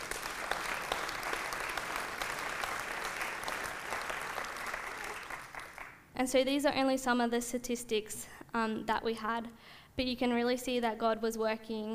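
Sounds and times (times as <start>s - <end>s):
audience clapping: 0.0s - 6.1s
speech: 6.2s - 11.9s.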